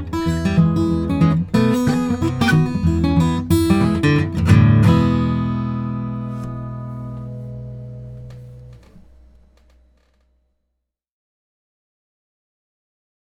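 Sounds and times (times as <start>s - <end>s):
blues song: 0.0s - 8.8s.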